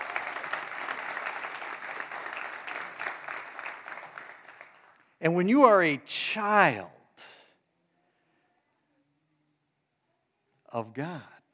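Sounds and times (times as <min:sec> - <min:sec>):
audience clapping: 0:00.0 - 0:05.8
speech: 0:05.2 - 0:07.0, 0:10.8 - 0:11.3.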